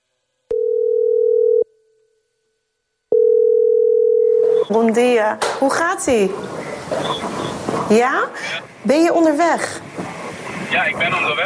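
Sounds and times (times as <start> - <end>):
telephone ringing tone while placing a call: 0.5 - 1.7, 3.1 - 4.8
speech: 4.7 - 9.8, 10.7 - 11.4.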